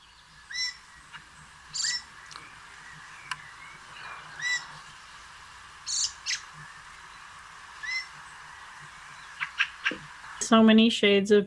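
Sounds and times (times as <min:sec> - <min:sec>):
fieldfare Turdus polaris calling: 0:00.0 - 0:10.4
speech: 0:10.5 - 0:11.4.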